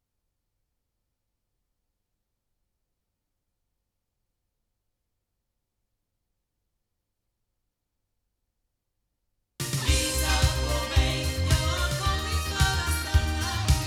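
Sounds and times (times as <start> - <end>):
loudspeakers: 9.8 - 13.8.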